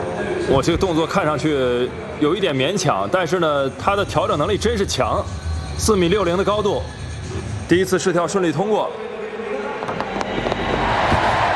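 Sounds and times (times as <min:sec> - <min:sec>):
speech: 0:00.5 - 0:09.0
home crowd cheering at an athletics pole vault: 0:09.8 - 0:11.5.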